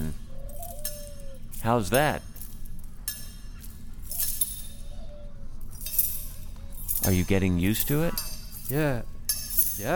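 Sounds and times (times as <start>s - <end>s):
metal handcuffs clinking together: 0.3s - 9.9s
speech: 1.6s - 2.3s, 7.1s - 9.1s, 9.8s - 9.9s.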